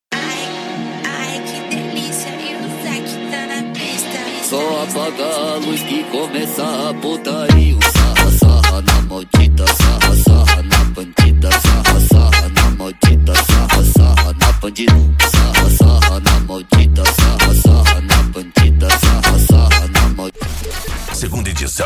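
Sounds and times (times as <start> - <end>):
car sound system playing music: 0.2 - 21.8.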